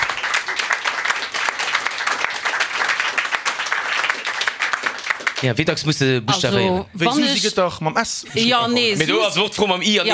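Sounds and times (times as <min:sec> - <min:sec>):
audience applause: 0:00.0 - 0:05.8
speech: 0:05.4 - 0:10.1.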